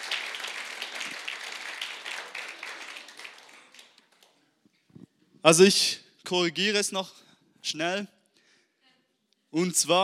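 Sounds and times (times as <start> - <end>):
audience applause: 0.0 - 4.4
speech: 5.4 - 8.2, 9.5 - 10.0.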